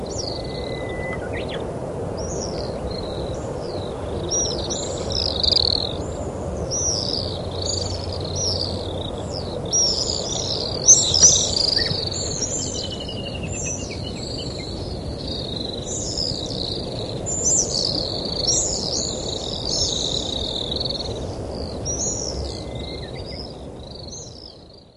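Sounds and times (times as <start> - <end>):
Pacific swifts screaming: 0.1 - 1.6, 2.2 - 24.2.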